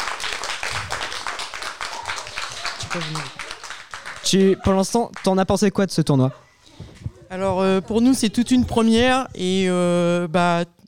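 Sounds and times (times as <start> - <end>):
crowd applause: 0.0 - 5.3
speech: 2.9 - 3.4, 4.2 - 6.5, 7.3 - 10.8.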